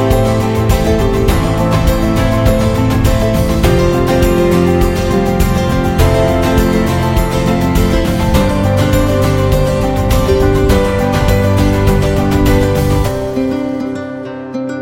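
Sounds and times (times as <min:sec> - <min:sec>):
inspirational acoustic guitar music: 0:00.0 - 0:14.7.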